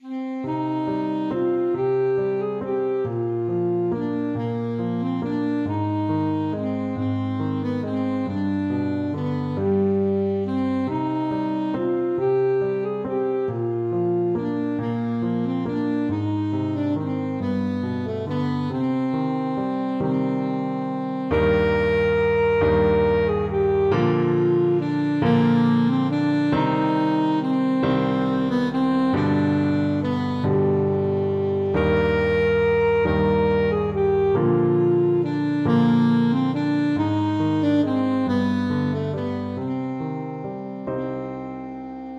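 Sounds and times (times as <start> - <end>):
saxophone: 0.0 - 42.1.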